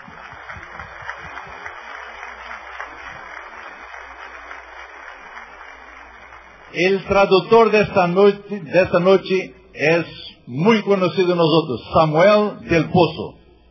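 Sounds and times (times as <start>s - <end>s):
audience applause: 0.0s - 7.9s
speech: 6.7s - 13.4s.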